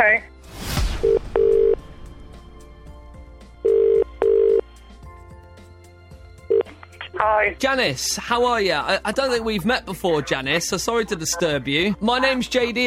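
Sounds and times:
speech: 0.0s - 0.4s, 7.2s - 12.8s
telephone ringback tones: 1.1s - 1.8s, 3.6s - 4.7s.

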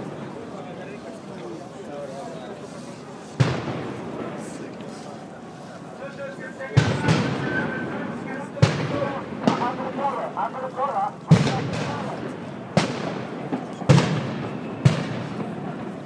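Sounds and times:
explosions: 3.4s - 4.4s, 6.8s - 10.1s, 11.3s - 16.0s.

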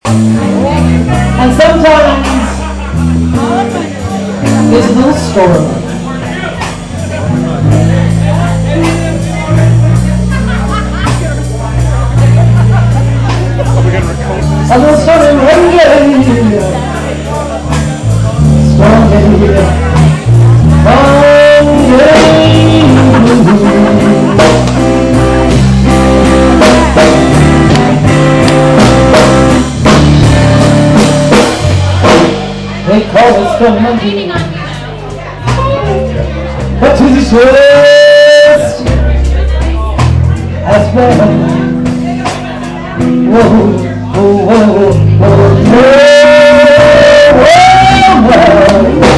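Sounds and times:
blues vocals: 0.0s - 49.1s
laughter: 2.1s - 5.3s, 8.8s - 14.6s, 21.5s - 25.6s.

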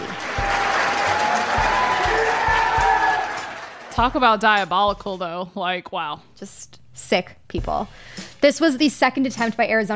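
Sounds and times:
applause from activists in audience: 0.0s - 4.0s
speech: 4.0s - 9.9s.

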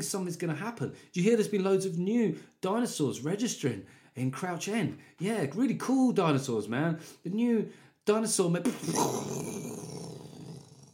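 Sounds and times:
speech: 0.0s - 10.0s
vocal imitation of an explosion: 8.7s - 10.9s.

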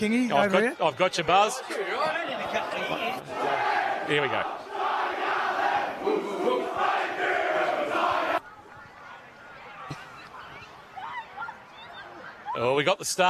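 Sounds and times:
speech: 0.0s - 4.7s, 12.6s - 13.2s
scattered chatter: 0.0s - 13.2s
team celebrating in the change rooms, many voices shouting together: 3.1s - 8.4s.

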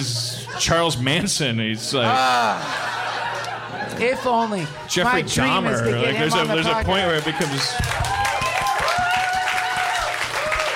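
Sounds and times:
speech: 0.0s - 3.0s, 3.8s - 8.0s
laughter: 0.0s - 7.9s
applause: 6.4s - 10.7s
people whooping: 7.2s - 10.7s.

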